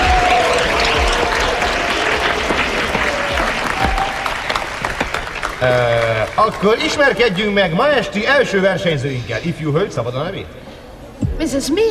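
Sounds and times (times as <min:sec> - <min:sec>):
audience applause: 0:00.0 - 0:07.3
speech: 0:05.6 - 0:10.7, 0:11.4 - 0:11.8.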